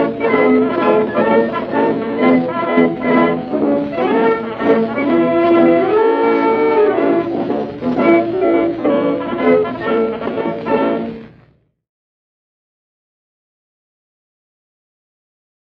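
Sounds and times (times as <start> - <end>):
military march: 0.0 - 11.3.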